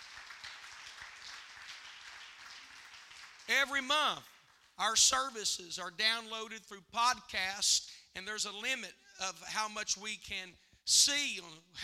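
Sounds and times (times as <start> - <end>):
audience clapping hands: 0.0 - 4.9
speech: 3.5 - 11.8.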